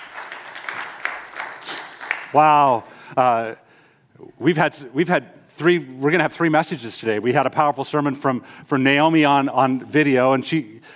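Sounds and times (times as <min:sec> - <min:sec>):
audience applause: 0:00.0 - 0:02.9
speech: 0:02.3 - 0:03.6, 0:04.2 - 0:10.9.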